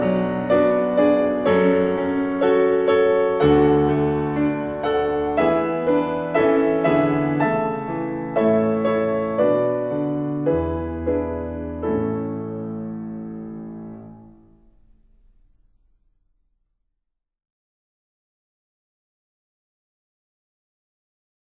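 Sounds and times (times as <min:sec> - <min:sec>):
piano performance of a children's carol: 0:00.0 - 0:16.2.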